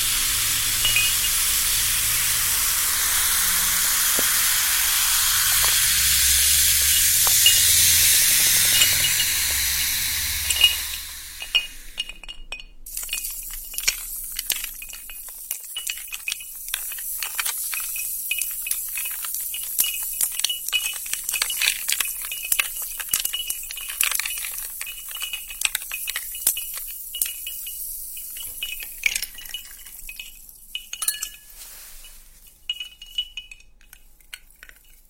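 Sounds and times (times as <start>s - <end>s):
sparkling soda water hissing and fizzing: 0.0s - 12.1s, 12.9s - 33.2s.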